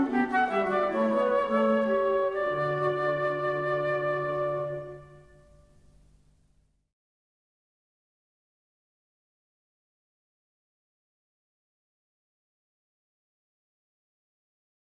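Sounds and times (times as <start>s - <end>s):
classical piece in D major: 0.0s - 6.4s.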